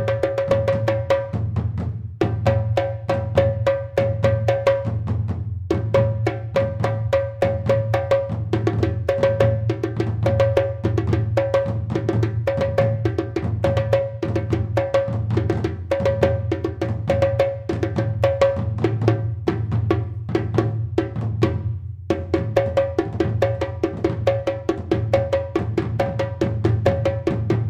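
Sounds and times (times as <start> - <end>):
djembe: 0.0 - 27.6
duny drum: 0.0 - 27.6.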